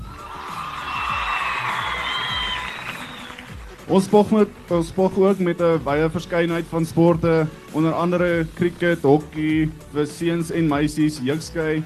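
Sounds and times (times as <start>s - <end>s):
cheering and whoops: 0.0s - 3.5s
audience applause: 0.1s - 3.9s
speech: 3.9s - 11.8s.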